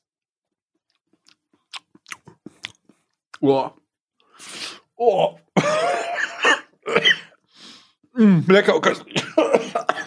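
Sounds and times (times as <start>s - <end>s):
person chewing food they are tasting: 0.8s - 3.4s
moist mouth sounds: 1.0s - 3.4s
speech: 3.4s - 3.8s, 4.4s - 6.0s, 8.2s - 10.0s
laughter: 5.6s - 7.0s, 9.1s - 10.0s.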